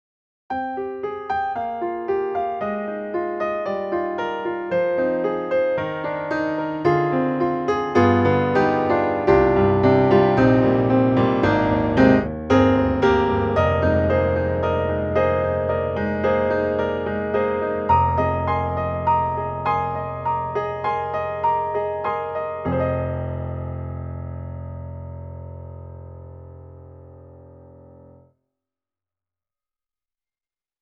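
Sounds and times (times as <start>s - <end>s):
piano: 0.5s - 28.3s.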